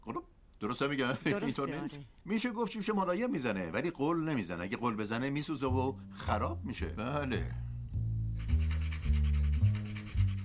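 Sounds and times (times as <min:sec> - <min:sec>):
speech: 0:00.6 - 0:07.6
nutmeg being grated: 0:08.4 - 0:10.4.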